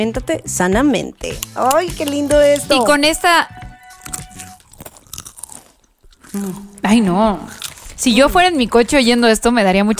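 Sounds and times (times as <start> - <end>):
speech: 0.0 - 4.2, 6.3 - 9.9
crunching on snack chips: 3.9 - 6.4.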